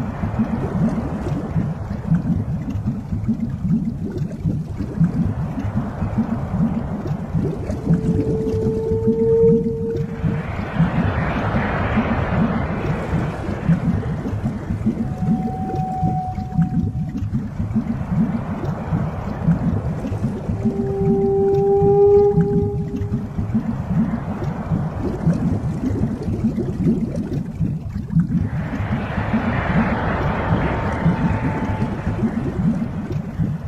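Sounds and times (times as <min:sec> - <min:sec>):
underwater rumble: 0:00.0 - 0:33.6
whale moaning: 0:07.6 - 0:10.7, 0:14.8 - 0:17.2, 0:20.6 - 0:23.3, 0:28.7 - 0:33.1.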